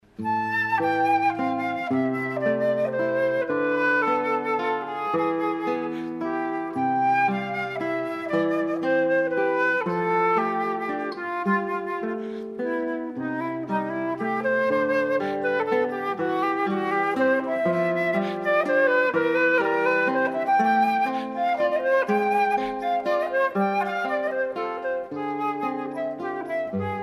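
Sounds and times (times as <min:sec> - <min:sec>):
flute playing a waltz: 0:00.0 - 0:27.0.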